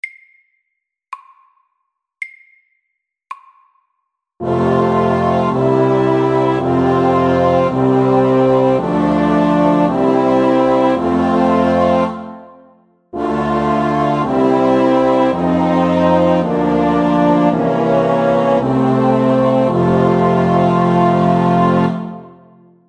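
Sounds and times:
chromatic chorale: 4.4 - 22.7.

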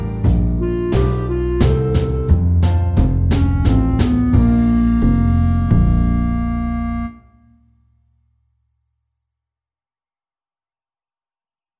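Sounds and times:
slow blues music: 0.0 - 7.1.

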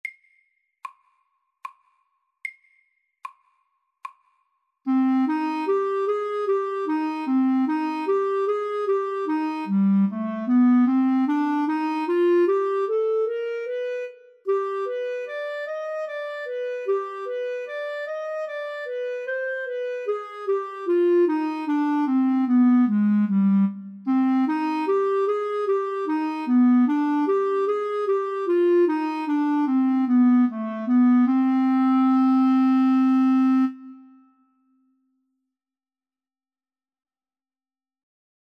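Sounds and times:
slow etude in D minor: 4.9 - 34.7.

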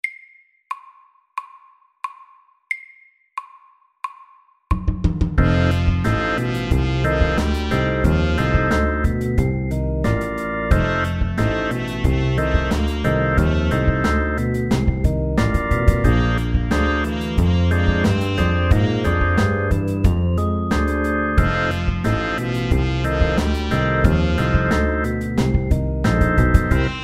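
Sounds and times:
slow twelve-bar blues music: 5.4 - 27.0.

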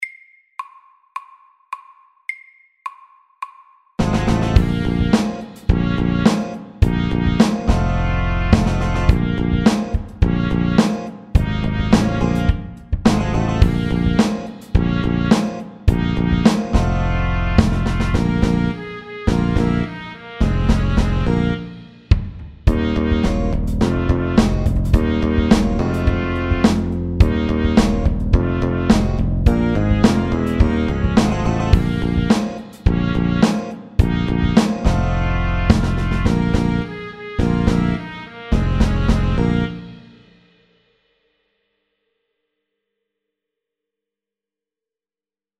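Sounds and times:
funky music: 4.0 - 40.2.

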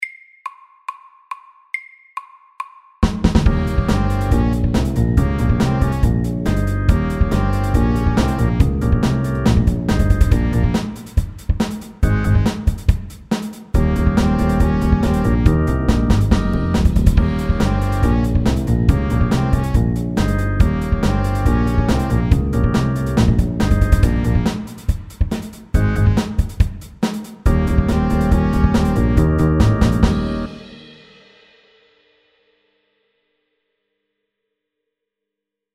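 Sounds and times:
fast eight-bar blues at 140 BPM: 3.2 - 11.4, 12.0 - 12.9, 13.8 - 26.6, 27.5 - 30.8.

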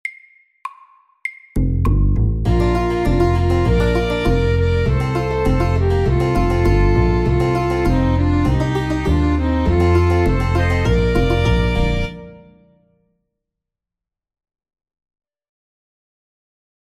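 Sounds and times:
country and western music: 2.2 - 12.8.

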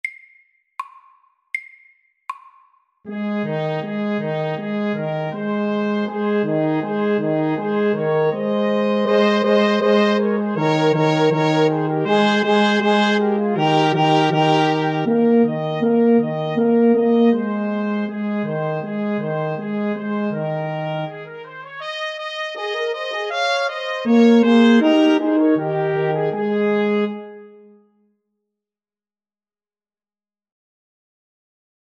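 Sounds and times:
fanfare: 3.1 - 27.7.

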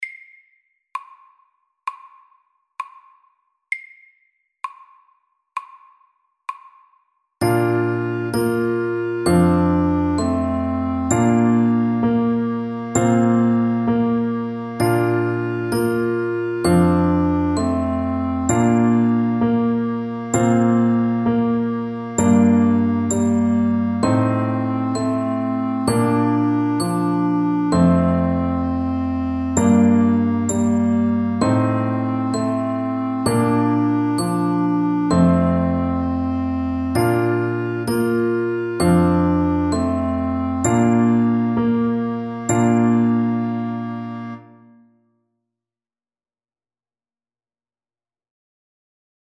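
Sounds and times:
slow lullaby: 7.4 - 44.5.

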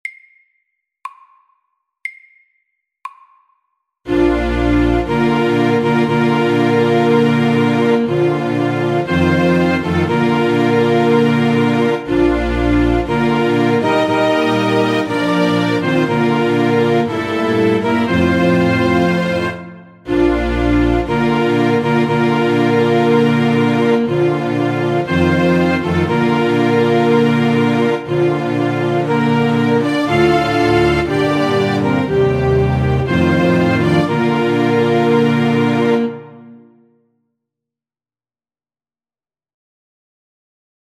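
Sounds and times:
slow wedding march music: 4.1 - 36.6.

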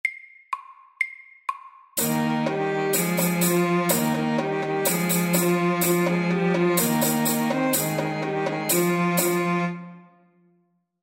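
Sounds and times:
fast folk dance music at 125 bpm: 2.0 - 9.7.

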